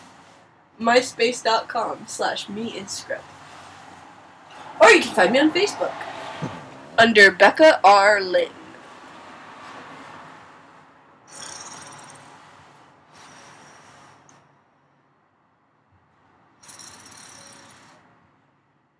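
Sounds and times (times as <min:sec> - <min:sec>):
speech: 0:00.8 - 0:03.4, 0:04.8 - 0:08.6
loud rasping snores: 0:11.3 - 0:12.4.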